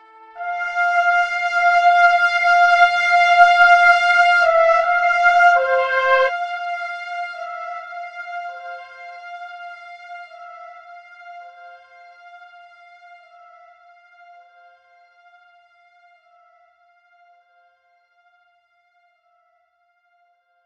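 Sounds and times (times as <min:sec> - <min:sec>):
gentle fanfare: 0:00.4 - 0:06.3.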